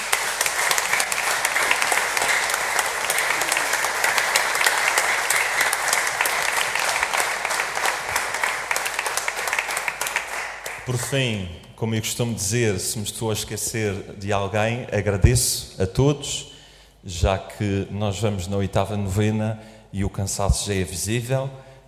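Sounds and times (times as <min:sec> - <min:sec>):
large audience applause: 0:00.0 - 0:11.1
speech: 0:10.9 - 0:21.7.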